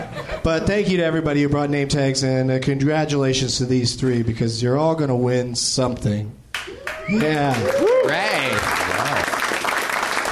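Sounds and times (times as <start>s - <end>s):
speech: 0.4s - 6.4s, 7.1s - 8.9s
audience applause at a group event: 6.8s - 10.3s.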